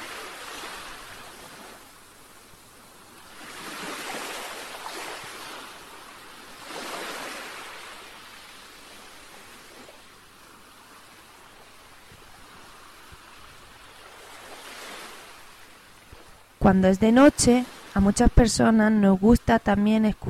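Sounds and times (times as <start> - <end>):
sea waves: 0.0 - 20.2
speech: 16.6 - 20.2.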